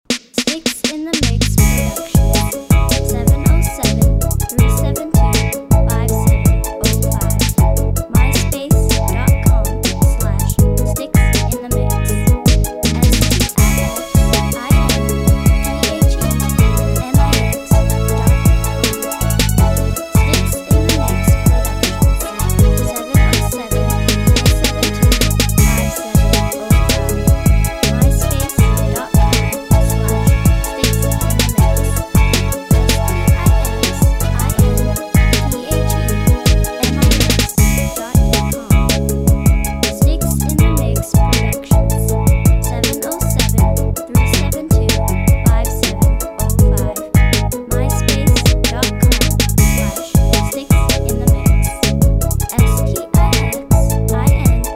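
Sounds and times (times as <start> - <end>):
1970s funk music: 0.0 - 54.7.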